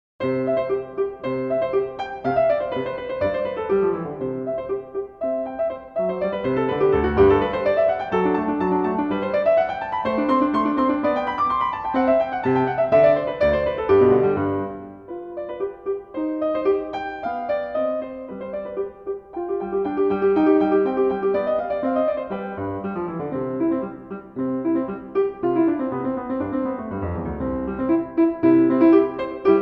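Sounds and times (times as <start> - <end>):
piano sonatina allegro: 0.2 - 29.6.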